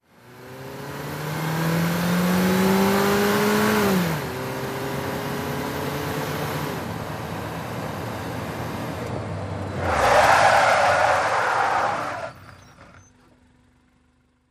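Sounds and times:
small compact car accelerating: 0.2 - 13.0
small compact car tyres skidding: 7.4 - 13.6.

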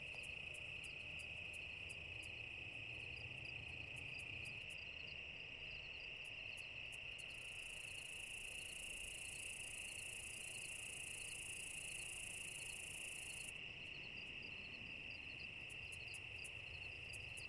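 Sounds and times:
cicadas: 0.0 - 17.4.

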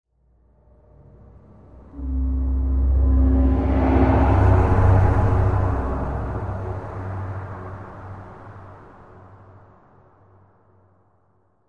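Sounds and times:
eerie tonal music: 0.7 - 9.2.

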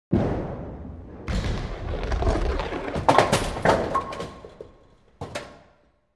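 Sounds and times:
bowling ball rolling: 1.3 - 5.4.

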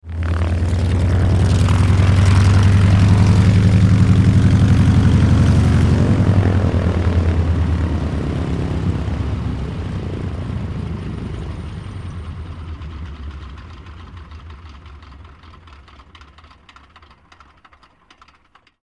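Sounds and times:
Taylorcraft aircraft engine throttling: 0.0 - 18.8.

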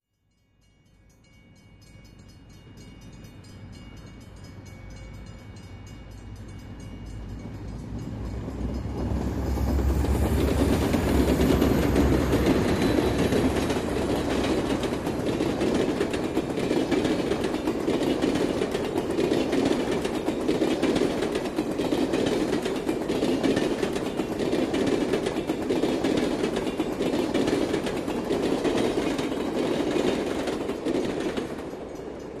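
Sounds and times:
freight train: 0.1 - 32.3.

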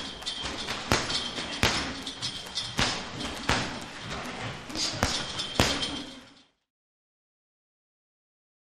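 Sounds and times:
boxing gym ambience: 0.0 - 6.7.

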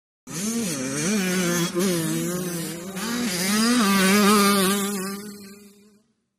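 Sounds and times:
several 80 cc motocross motorcycles passing fast right to left: 0.3 - 5.7.

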